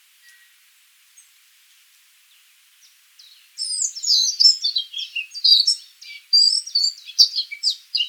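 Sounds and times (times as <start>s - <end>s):
Eurasian blackcap Sylvia atricapilla song: 2.8s - 8.0s.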